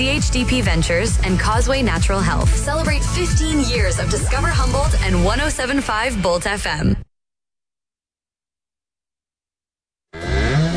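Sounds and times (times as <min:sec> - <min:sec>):
speech: 0:00.0 - 0:07.0
cow mooing: 0:10.2 - 0:10.7.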